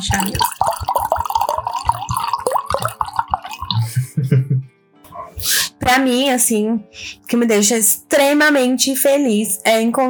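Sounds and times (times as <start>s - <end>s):
speech: 0.0s - 0.8s, 5.9s - 10.0s
wine glugging into a small bottle: 0.0s - 3.9s
laughter: 3.8s - 4.6s.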